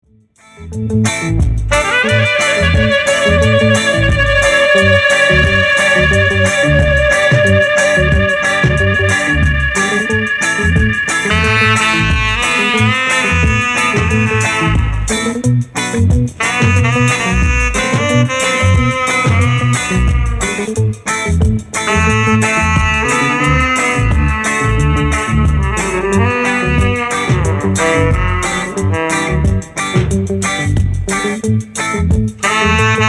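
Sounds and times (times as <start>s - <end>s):
dub music: 0.4s - 33.0s.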